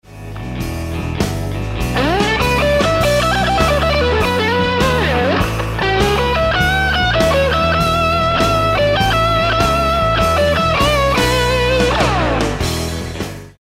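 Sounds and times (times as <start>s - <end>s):
guitar lick: 0.3s - 13.4s.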